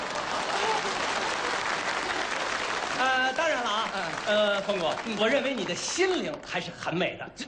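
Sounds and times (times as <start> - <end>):
audience applause at a comedy stage performance: 0.0 - 6.6
speech: 3.4 - 7.4.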